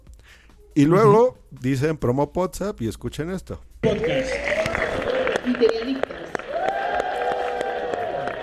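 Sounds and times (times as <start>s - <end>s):
speech: 0.8s - 4.4s, 5.4s - 6.2s
crowd clapping: 3.8s - 8.4s
crowd cheering and whooping: 4.3s - 8.4s.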